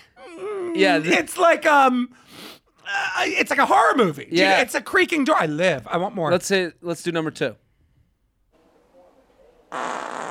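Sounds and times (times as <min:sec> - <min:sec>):
speech: 0:00.2 - 0:07.6
wet fart: 0:09.7 - 0:10.2.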